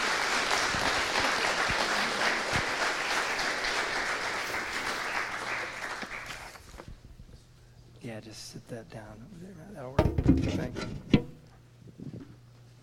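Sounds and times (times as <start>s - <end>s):
round of applause: 0.0s - 6.7s
speech: 8.7s - 11.0s.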